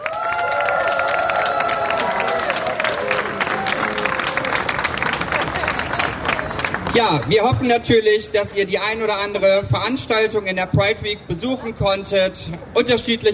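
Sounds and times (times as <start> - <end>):
crowd cheering and whooping: 0.0 - 6.1
crowd applause: 0.0 - 7.3
speech: 7.0 - 13.3.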